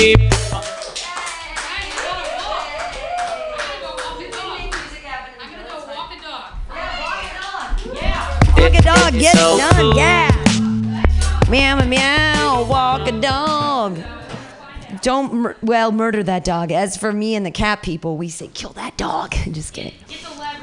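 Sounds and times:
speech: 0.0 - 0.4, 9.1 - 10.3, 11.5 - 14.1, 15.0 - 20.4
audience clapping: 0.0 - 5.8, 7.4 - 8.6.

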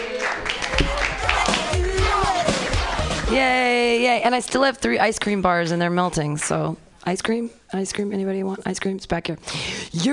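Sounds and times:
audience clapping: 0.0 - 3.5
speech: 3.3 - 10.1.

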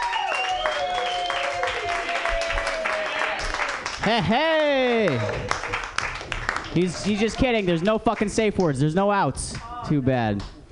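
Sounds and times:
audience applause: 0.0 - 8.3
speech: 4.0 - 5.8, 6.8 - 10.6.

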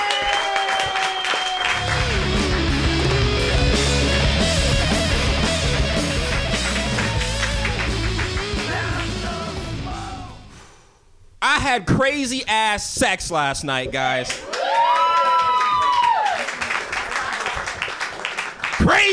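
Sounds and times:
comedy club crowd clapping and cheering: 0.0 - 9.8, 14.1 - 19.1
low pulsing musical bed: 1.8 - 10.5
speech: 11.7 - 14.5.

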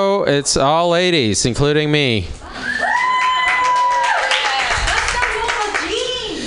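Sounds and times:
speech: 0.0 - 2.8
crowd whooping and cheering: 2.5 - 6.0
crowd applause: 2.8 - 6.3.

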